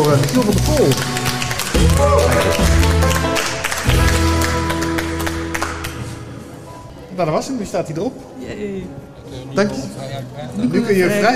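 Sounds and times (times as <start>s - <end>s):
audience applause: 0.0s - 6.2s
speech: 0.1s - 1.2s, 1.8s - 3.0s, 7.2s - 11.3s.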